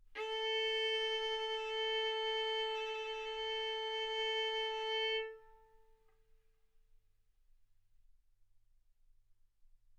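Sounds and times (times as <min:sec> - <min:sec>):
violin arco on A string: 0:00.2 - 0:05.9.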